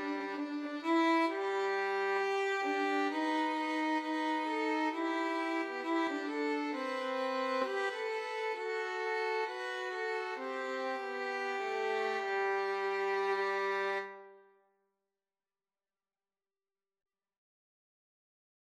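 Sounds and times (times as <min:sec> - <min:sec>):
violin duet: 0:00.0 - 0:14.4.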